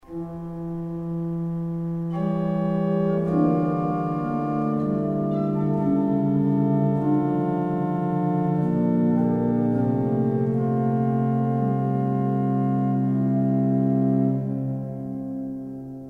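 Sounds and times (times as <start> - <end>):
prelude in E major: 0.0 - 16.0.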